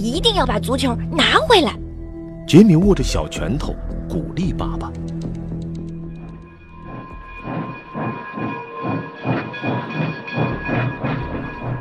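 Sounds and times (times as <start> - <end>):
speech: 0.0 - 1.8, 2.5 - 5.4
train running: 6.8 - 11.7.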